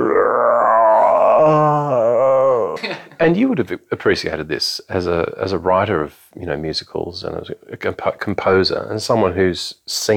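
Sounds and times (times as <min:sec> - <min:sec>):
man imitating a lion's grunt: 0:00.0 - 0:03.0
speech: 0:03.2 - 0:10.1.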